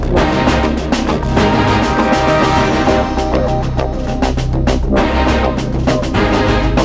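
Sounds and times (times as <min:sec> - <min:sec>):
menu soundtrack: 0:00.2 - 0:06.7.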